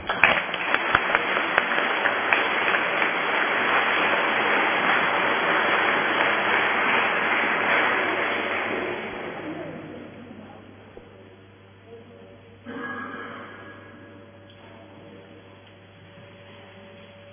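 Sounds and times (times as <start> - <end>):
crowd applauding: 0.0 - 10.4.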